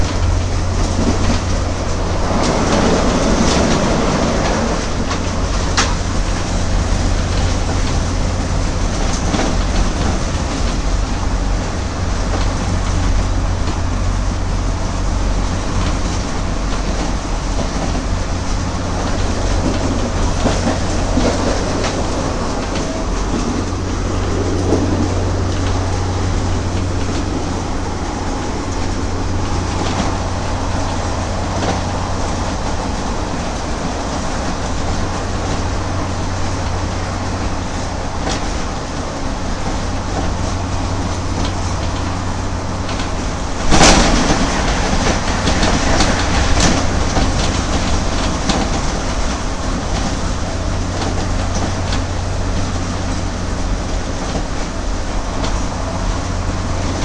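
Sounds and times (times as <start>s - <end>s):
noisy old train: 0.0s - 57.0s.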